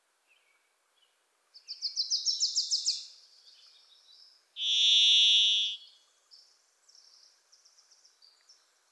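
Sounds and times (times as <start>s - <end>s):
small bird chattering trill: 4.6s - 5.8s
varied thrush buzzy whistled song: 4.6s - 5.8s.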